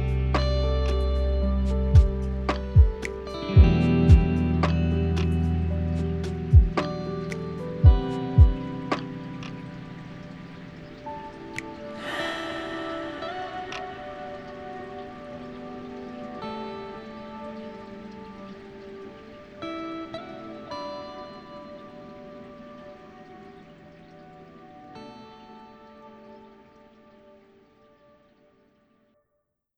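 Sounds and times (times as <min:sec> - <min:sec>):
lofi hip hop: 0:00.0 - 0:17.1.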